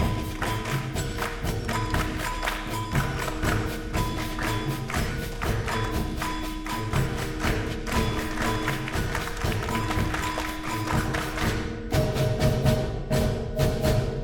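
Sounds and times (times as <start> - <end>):
samba bells: 0.0 - 14.2.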